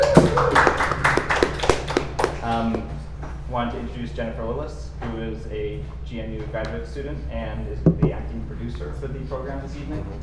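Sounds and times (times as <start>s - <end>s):
audience applause: 0.0s - 2.6s
speech: 3.7s - 10.2s.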